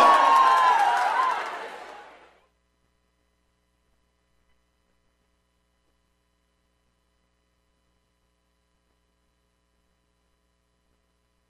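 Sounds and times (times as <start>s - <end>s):
crowd shouting: 0.0s - 2.3s.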